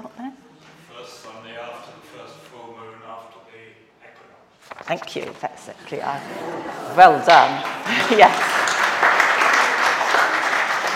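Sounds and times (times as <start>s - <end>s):
speech: 4.9s - 8.6s
round of applause: 7.6s - 10.9s.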